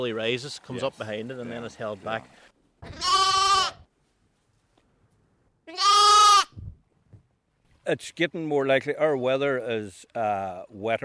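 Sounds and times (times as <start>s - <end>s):
speech: 0.0s - 3.2s, 7.9s - 11.0s
sheep bleating: 2.8s - 3.8s, 5.7s - 6.5s.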